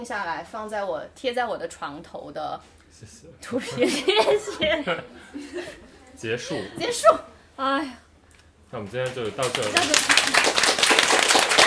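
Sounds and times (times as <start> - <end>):
speech: 0.0 - 8.0, 8.7 - 10.5
laughter: 3.6 - 6.8
audience clapping: 8.9 - 11.6.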